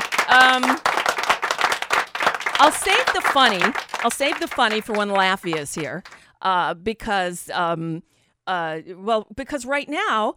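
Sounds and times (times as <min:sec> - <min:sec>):
applause clapping: 0:00.0 - 0:06.2
speech: 0:00.3 - 0:00.9, 0:02.6 - 0:10.3.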